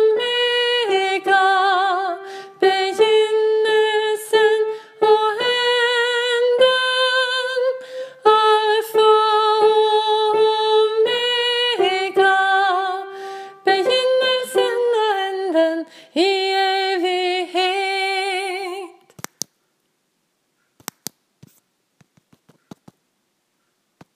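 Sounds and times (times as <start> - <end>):
soprano voice: 0.0 - 19.1.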